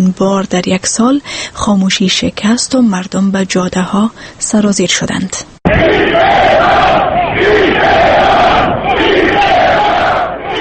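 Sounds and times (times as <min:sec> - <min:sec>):
speech: 0:00.0 - 0:06.1
protesters shouting anti-government slogans: 0:05.7 - 0:10.5.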